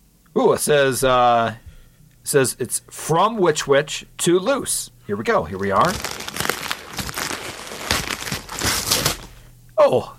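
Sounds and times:
speech: 0:00.4 - 0:01.6, 0:02.2 - 0:06.2, 0:09.8 - 0:10.1
gift wrap paper tearing and crumpling: 0:05.6 - 0:09.4.

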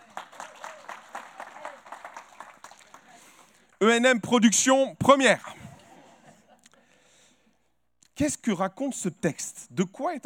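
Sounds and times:
audience applause: 0:00.0 - 0:03.6
speech: 0:03.8 - 0:05.6, 0:08.2 - 0:10.2.

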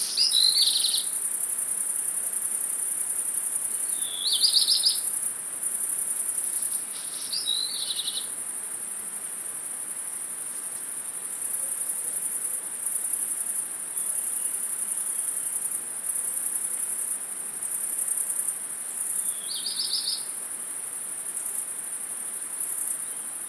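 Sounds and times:
twittering bird calls: 0:00.0 - 0:01.2, 0:04.0 - 0:05.1, 0:06.8 - 0:08.3, 0:19.3 - 0:20.3
Great Green Bush-cricket buzzing: 0:00.0 - 0:10.6, 0:11.2 - 0:23.4.

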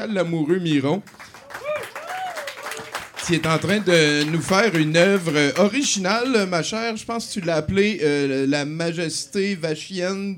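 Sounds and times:
speech: 0:00.0 - 0:01.2, 0:03.3 - 0:10.3
audience applause: 0:01.1 - 0:06.4
voice cheering: 0:01.4 - 0:02.9.

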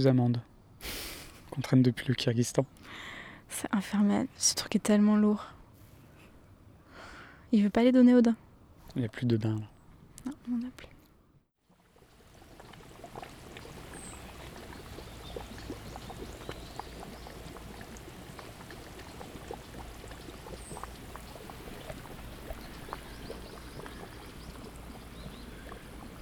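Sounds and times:
speech: 0:00.0 - 0:01.0, 0:01.6 - 0:05.6, 0:07.5 - 0:08.4, 0:09.0 - 0:10.9
bubbling water: 0:11.7 - 0:26.2.

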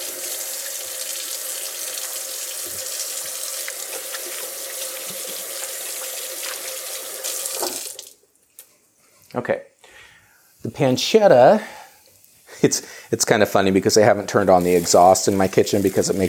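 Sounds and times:
tap water pouring into a sink: 0:00.0 - 0:08.2, 0:14.6 - 0:16.2
hands being washed: 0:00.0 - 0:08.7, 0:14.4 - 0:16.2
speech: 0:09.3 - 0:09.7, 0:10.6 - 0:11.8, 0:12.6 - 0:16.2.

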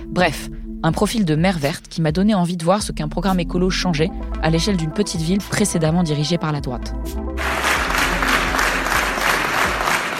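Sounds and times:
speech: 0:00.2 - 0:07.6
crowd applauding election victory: 0:07.4 - 0:10.1.

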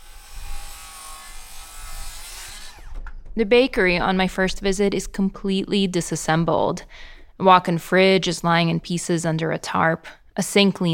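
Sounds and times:
saws cutting at construction site: 0:00.0 - 0:03.2
speech: 0:03.4 - 0:10.9.

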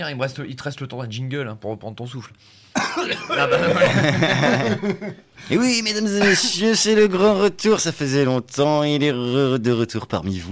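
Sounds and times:
speech: 0:00.0 - 0:10.5
coughing fit with throat-clearing: 0:02.8 - 0:04.6, 0:06.1 - 0:06.7
laughter: 0:03.0 - 0:06.9.

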